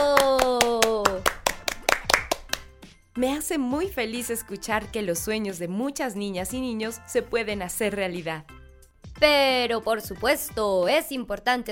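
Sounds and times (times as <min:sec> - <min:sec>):
applause: 0:00.0 - 0:02.7
speech: 0:03.2 - 0:08.6, 0:09.2 - 0:11.7.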